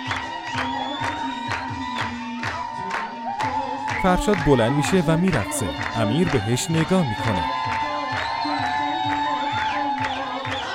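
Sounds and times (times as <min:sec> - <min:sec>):
guests clapping: 0:00.0 - 0:10.7
speech: 0:04.0 - 0:07.9.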